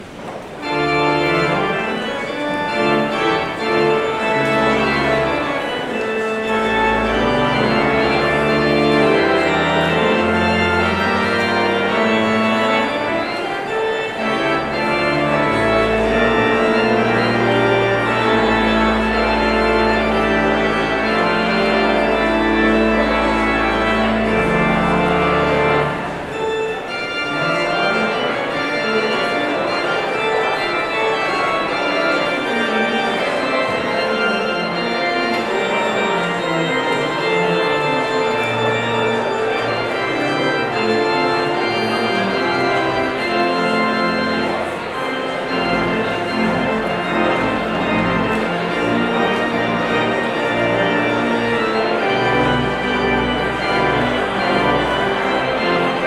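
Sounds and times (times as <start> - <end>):
prelude in D minor: 0.3 - 56.0.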